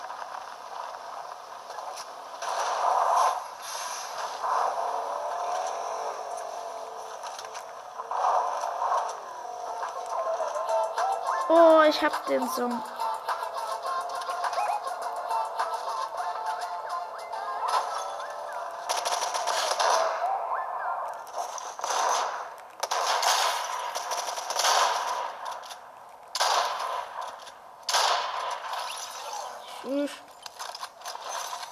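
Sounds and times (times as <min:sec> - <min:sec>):
continuous video game sound: 0:00.0 - 0:31.7
speech: 0:11.5 - 0:13.0
sniper rifle gunfire in a video game: 0:21.6 - 0:25.6, 0:26.4 - 0:27.3, 0:27.9 - 0:29.4.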